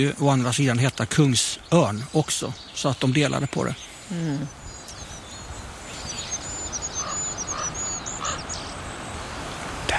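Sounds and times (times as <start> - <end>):
speech: 0.0 - 4.6
goldcrest song: 0.0 - 9.9.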